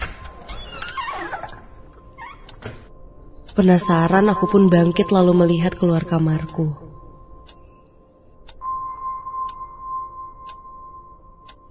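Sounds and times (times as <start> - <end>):
door hinge creaking open: 0.0 - 3.0
speech: 3.6 - 6.8.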